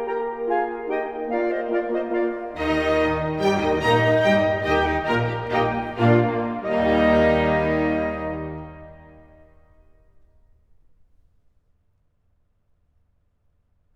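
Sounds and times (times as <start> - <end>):
classical minuet in E flat major: 0.0 - 9.7.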